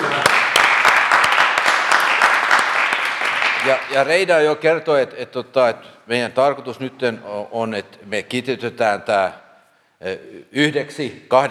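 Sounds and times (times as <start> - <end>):
workshop participants applauding: 0.0 - 4.3
speech: 3.7 - 9.4, 10.0 - 11.5.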